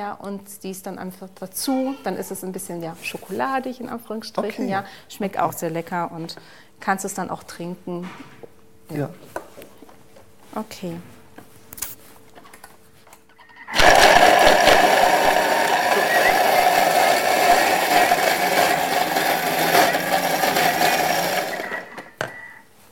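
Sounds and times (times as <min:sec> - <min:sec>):
speech: 0:00.0 - 0:09.4, 0:10.6 - 0:11.1
blender mixing ingredients: 0:13.7 - 0:22.1.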